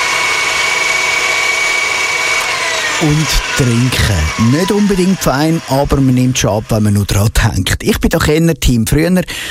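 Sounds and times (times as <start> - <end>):
blender mixing a smoothie: 0.0 - 7.9
speech: 3.0 - 9.4.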